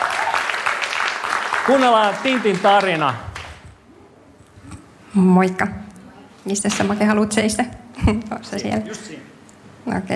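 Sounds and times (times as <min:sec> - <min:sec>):
audience applause: 0:00.0 - 0:03.6
speech: 0:01.6 - 0:03.3, 0:05.2 - 0:05.8, 0:06.4 - 0:10.1.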